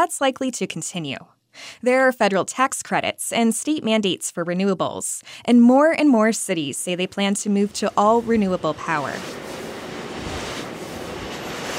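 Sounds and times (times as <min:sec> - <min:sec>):
speech: 0:00.0 - 0:09.5
enormous wind turbine blades rotating on a breezy day: 0:07.0 - 0:11.7
wind buffeting: 0:07.6 - 0:11.7.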